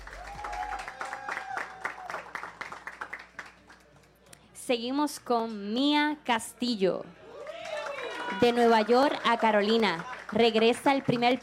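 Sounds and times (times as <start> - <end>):
crowd applauding in a large space: 0.0 - 4.0, 7.3 - 11.4
speech: 4.7 - 7.2, 8.4 - 11.4.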